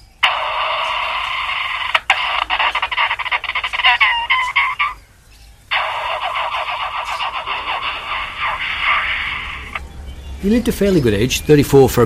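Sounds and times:
superb lyrebird mimicking a machine rattle: 0.0s - 5.0s, 5.7s - 9.8s
superb lyrebird calling: 0.0s - 11.2s
speech: 10.4s - 12.0s.

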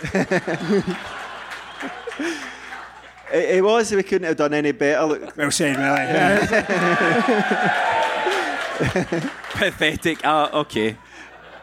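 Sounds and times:
person laughing: 0.0s - 1.0s, 6.1s - 7.7s, 8.3s - 9.4s
speech: 0.0s - 1.2s, 3.3s - 8.2s, 8.8s - 11.0s
audience applause: 0.0s - 3.3s, 5.6s - 11.0s.

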